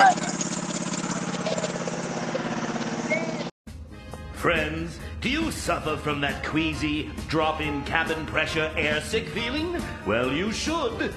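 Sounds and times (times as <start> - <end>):
small lawn mower engine running: 0.0 - 3.5
speech: 4.4 - 11.1.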